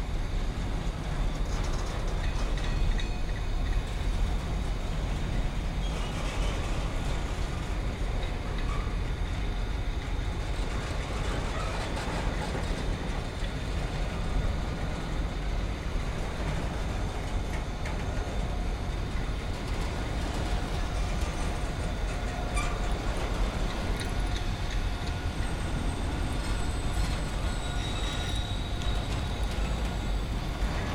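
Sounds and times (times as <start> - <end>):
long train passing: 0.0 - 30.9.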